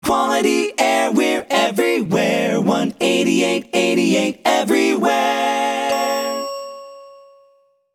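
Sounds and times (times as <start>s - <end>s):
a cappella logo jingle: 0.0s - 7.9s.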